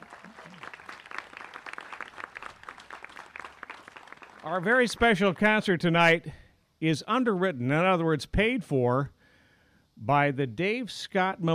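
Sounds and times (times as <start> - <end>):
round of applause from audience: 0.0 - 5.2
speech: 4.4 - 9.2, 10.0 - 11.5.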